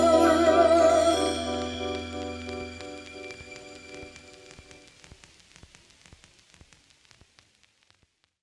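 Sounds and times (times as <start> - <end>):
instrumental music: 0.0 - 4.8.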